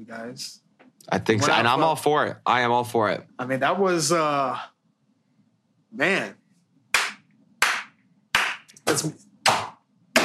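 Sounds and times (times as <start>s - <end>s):
speech: 0.0s - 4.7s, 5.9s - 6.4s, 8.9s - 9.6s
hands clapping: 7.0s - 10.2s.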